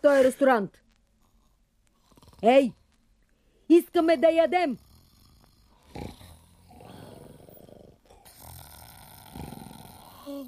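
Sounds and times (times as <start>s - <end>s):
speech: 0.0s - 0.8s, 2.4s - 2.8s, 3.7s - 4.8s, 10.3s - 10.4s
steady hiss: 0.0s - 10.4s
townspeople asleep and snoring: 1.3s - 2.8s, 4.0s - 10.4s.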